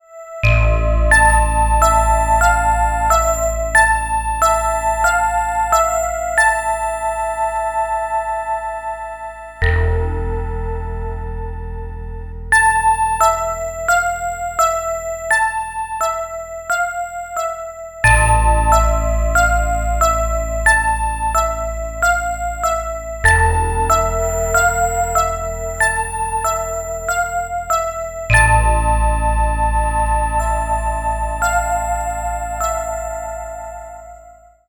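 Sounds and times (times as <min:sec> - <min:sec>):
scary ringtone: 0:00.2 - 0:34.5.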